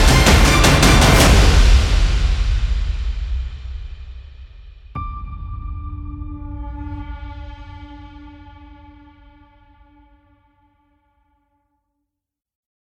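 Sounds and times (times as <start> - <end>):
heroic epic motivational music: 0.0 - 10.2.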